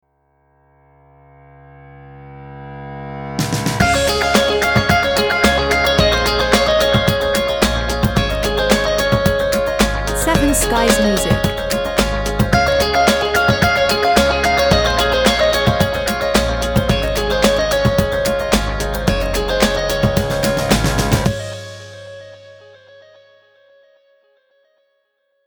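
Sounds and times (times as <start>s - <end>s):
jingle: 3.8s - 21.9s.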